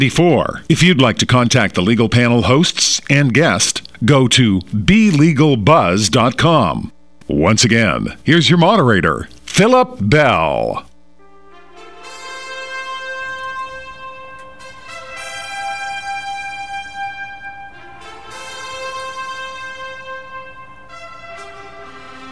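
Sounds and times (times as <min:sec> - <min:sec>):
speech: 0:00.0 - 0:10.9
orchestral brass fanfare music: 0:11.5 - 0:22.3.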